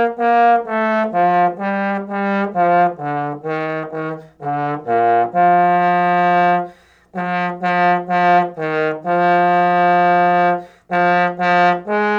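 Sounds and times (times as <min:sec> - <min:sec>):
trombone playing a march: 0:00.0 - 0:12.1.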